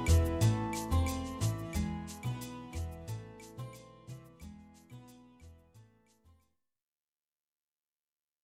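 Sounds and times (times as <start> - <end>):
Latin style guitar: 0.0 - 6.5.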